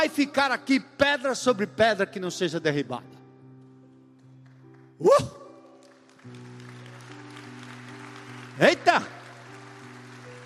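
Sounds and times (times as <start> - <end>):
speech: 0.0 - 3.2, 5.0 - 5.4, 8.6 - 9.2
audience applauding: 4.4 - 10.4.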